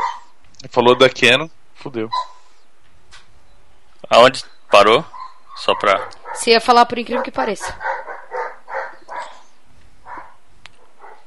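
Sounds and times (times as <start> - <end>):
dog barking: 0.0 - 1.2, 2.1 - 2.5, 4.7 - 11.2
speech: 0.6 - 2.4, 4.1 - 7.9.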